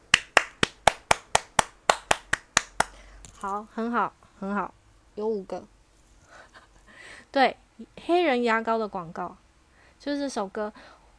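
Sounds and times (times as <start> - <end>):
clapping: 0.1 - 3.0
speech: 3.4 - 5.8, 7.3 - 9.4, 10.0 - 11.0.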